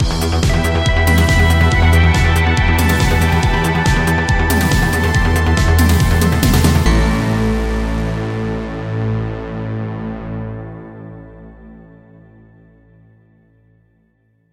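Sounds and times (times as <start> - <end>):
synthwave win jingle: 0.6 - 9.5.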